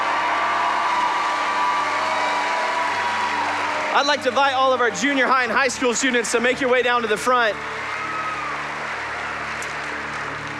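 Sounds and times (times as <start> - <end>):
audience applause: 0.0 - 10.5
speech: 3.9 - 7.9.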